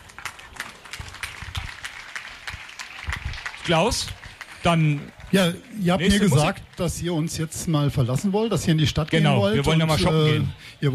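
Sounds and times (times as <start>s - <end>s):
audience applause: 0.0s - 7.3s
speech: 3.7s - 10.9s.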